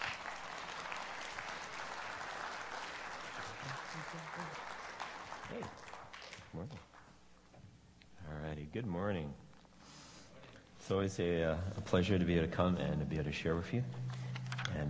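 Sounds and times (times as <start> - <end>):
congregation clapping to welcome a pastor in church: 0.0 - 7.2
speech: 4.0 - 4.8, 5.5 - 5.9, 6.5 - 6.9, 8.6 - 9.4, 10.9 - 14.2.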